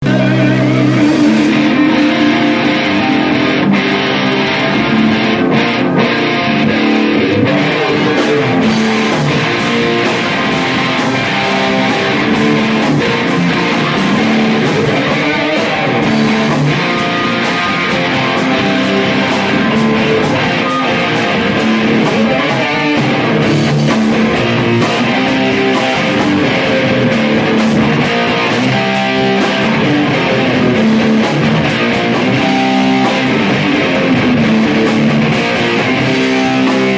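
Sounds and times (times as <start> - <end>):
band playing a song in a jam room: 0.0 - 36.9.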